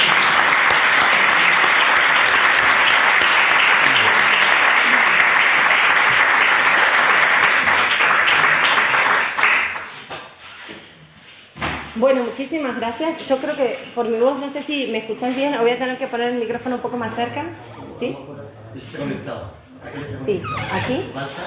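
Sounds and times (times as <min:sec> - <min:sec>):
audience applause: 0:00.0 - 0:10.0
speech: 0:12.4 - 0:21.4.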